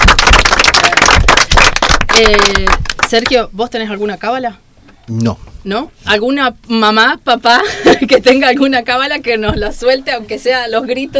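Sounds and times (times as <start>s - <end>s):
loud audience applause: 0.0s - 3.0s
speech: 2.2s - 11.1s.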